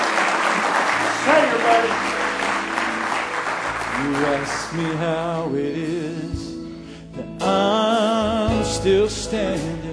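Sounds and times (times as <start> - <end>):
audience clapping hands in praise: 0.0 - 5.2
speech: 1.6 - 2.2, 4.0 - 6.6, 7.2 - 9.8.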